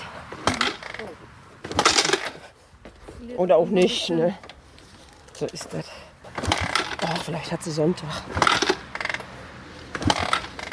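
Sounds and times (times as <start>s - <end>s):
motorcycle being kick-started: 0.4s - 2.5s, 4.5s - 7.3s, 8.3s - 10.7s
speech: 3.2s - 4.5s, 5.4s - 6.1s, 7.0s - 8.6s.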